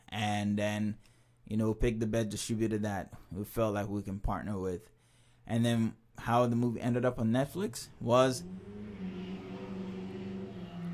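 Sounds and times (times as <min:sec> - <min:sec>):
speech: 0:00.4 - 0:08.9
motor carriage engine droning with a low humming tone: 0:07.8 - 0:10.9.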